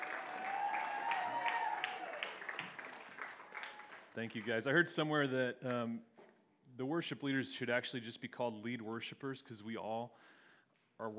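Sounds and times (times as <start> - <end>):
audience applause: 0.0 - 4.6
speech: 4.2 - 6.1, 6.8 - 10.4, 11.0 - 11.1.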